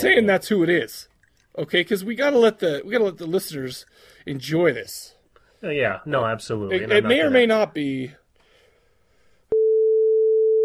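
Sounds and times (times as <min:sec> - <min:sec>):
speech: 0:00.0 - 0:08.2
censor beep: 0:09.6 - 0:10.6.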